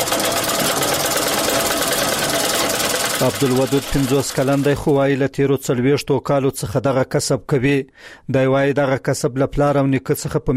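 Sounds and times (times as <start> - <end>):
sewing machine sewing a sheepskin coat: 0.0 - 5.1
speech: 3.2 - 10.5.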